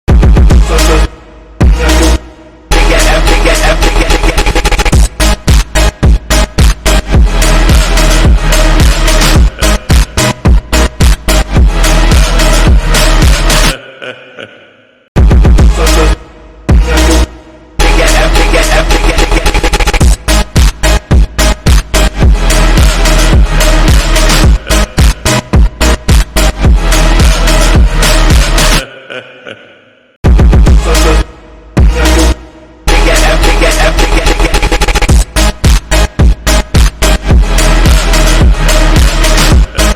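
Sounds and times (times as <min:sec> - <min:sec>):
phonk music: 0:00.1 - 0:13.9, 0:15.2 - 0:29.2, 0:30.2 - 0:39.9.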